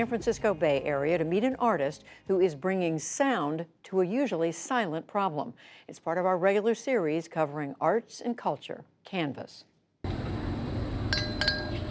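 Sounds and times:
speech: 0.0 - 10.2
bells ringing like wind chimes: 11.1 - 11.8.

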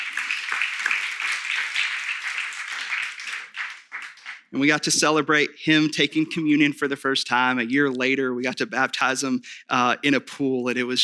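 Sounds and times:
audience clapping: 0.0 - 5.0
speech: 4.5 - 11.0.

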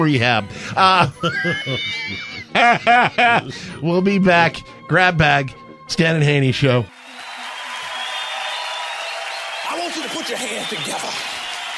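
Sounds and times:
speech: 0.0 - 7.0, 10.2 - 11.2
laughter: 0.6 - 3.8
studio audience applause: 6.9 - 11.7.

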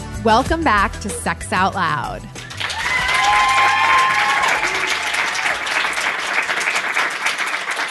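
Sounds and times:
speech: 0.2 - 2.3
live studio audience applauding at the Catalyst Con West conference: 2.4 - 7.9
audience whoops: 2.5 - 6.7.

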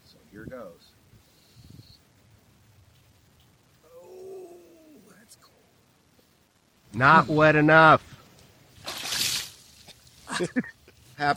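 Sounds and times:
speech: 0.3 - 1.0, 7.0 - 8.1, 10.4 - 11.3
ice-cold water splashing onto grass during a challenge: 8.7 - 10.4.

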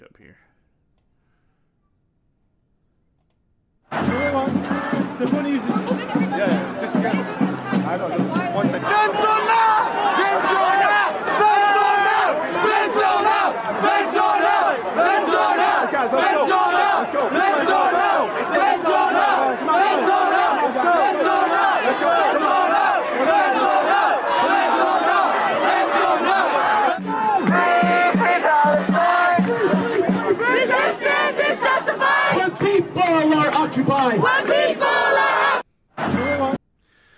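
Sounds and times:
protest crowd chanting and shouting: 3.9 - 36.6.

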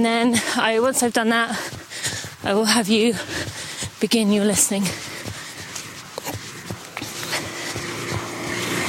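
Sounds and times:
speech: 0.0 - 5.2
footsteps or scuffs: 0.0 - 8.8
car passing on narrow road: 5.8 - 8.8.

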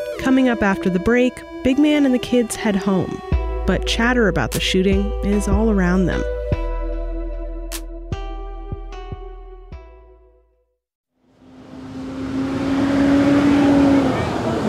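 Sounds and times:
speech: 0.2 - 6.6
school bus pulling up: 11.3 - 14.6.

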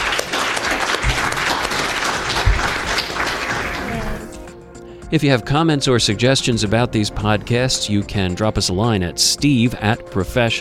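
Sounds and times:
audience applause: 0.0 - 4.5
speech: 5.1 - 10.5.

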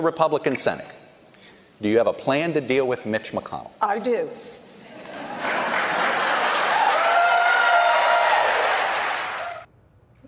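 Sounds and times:
speech: 0.0 - 1.0, 1.8 - 4.6
laughter: 4.8 - 6.9
crowd applauding: 5.5 - 9.7.

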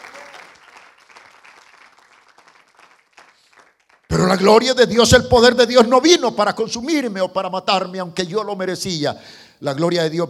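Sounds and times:
church congregation applause: 0.0 - 4.5
speech: 4.2 - 10.2.

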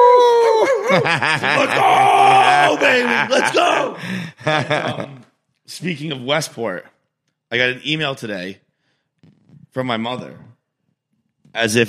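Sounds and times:
person imitating a coyote howl: 0.0 - 1.0, 1.6 - 4.0
laughter: 0.6 - 5.3
speech: 1.0 - 6.9, 7.5 - 8.6, 9.8 - 10.5, 11.5 - 11.8.

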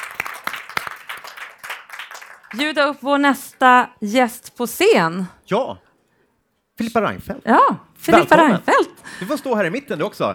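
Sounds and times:
warm applause: 0.0 - 3.6
speech: 2.5 - 5.8, 6.8 - 10.3.

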